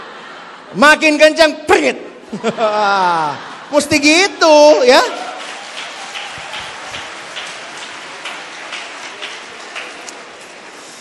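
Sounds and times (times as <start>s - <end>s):
speech: 0.7s - 5.2s
laughter: 2.2s - 10.4s
audience clapping: 4.9s - 11.0s.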